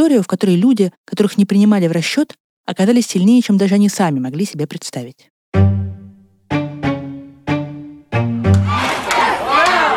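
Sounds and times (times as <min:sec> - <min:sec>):
speech: 0:00.0 - 0:05.8
crowd yelling and cheering: 0:08.5 - 0:09.9
protesters chanting a slogan: 0:08.7 - 0:09.9.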